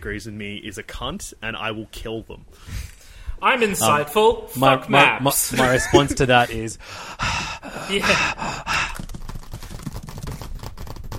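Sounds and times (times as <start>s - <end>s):
speech: 0.0s - 8.9s
laughter: 5.5s - 6.6s
keyboard typing: 8.7s - 11.1s.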